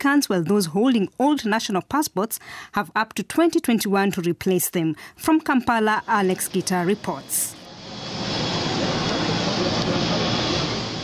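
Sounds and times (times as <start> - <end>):
speech: 0.0 - 8.6
aircraft roar at Entebbe Airport, Uganda: 5.7 - 11.0.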